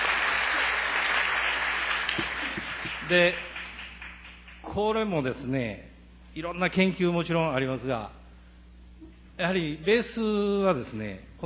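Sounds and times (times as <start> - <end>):
audience applause: 0.0 - 4.7
speech: 3.1 - 3.5, 4.8 - 8.2, 9.4 - 11.4.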